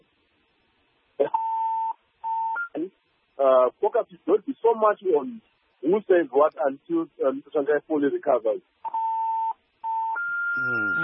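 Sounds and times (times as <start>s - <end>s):
phone beeping with an incoming call: 1.2s - 2.8s, 8.8s - 11.0s
speech: 3.4s - 8.8s.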